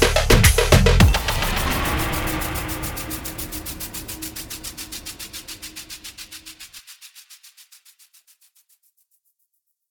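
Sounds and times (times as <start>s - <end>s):
dhol drumming competition song: 0.0s - 6.2s.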